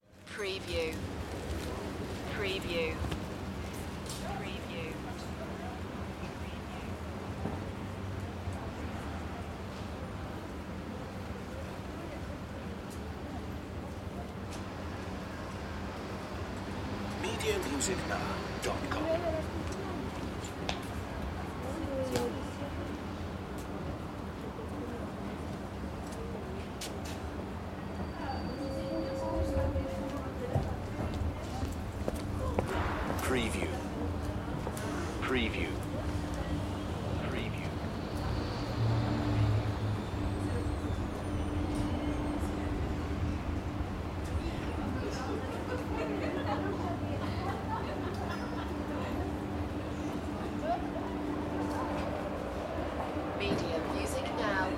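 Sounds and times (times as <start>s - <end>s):
city street ambience in France: 0.0s - 54.7s.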